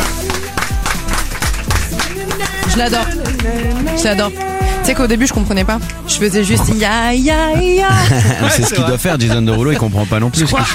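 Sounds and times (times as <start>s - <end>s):
applause: 0.0s - 3.7s
laughter: 1.3s - 4.8s, 7.6s - 10.7s
speech: 2.8s - 10.7s.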